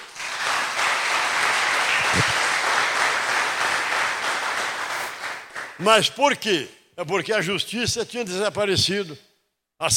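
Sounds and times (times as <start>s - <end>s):
audience applauding: 0.0s - 5.8s
speech: 5.8s - 9.9s.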